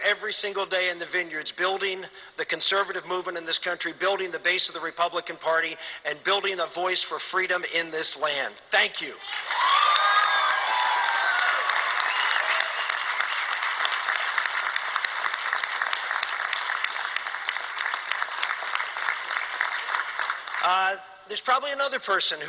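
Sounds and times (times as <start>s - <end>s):
speech: 0.1s - 10.1s, 20.7s - 22.4s
shrill whoops and shouts: 9.3s - 12.9s
crowd cheering and applauding: 9.3s - 20.8s.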